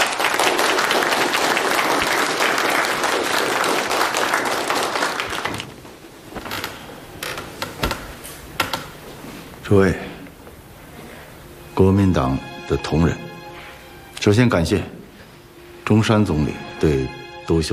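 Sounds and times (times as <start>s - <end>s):
warm applause from audience: 0.0s - 5.8s
speech: 9.7s - 10.1s, 11.8s - 13.3s, 14.2s - 15.0s, 15.9s - 17.7s.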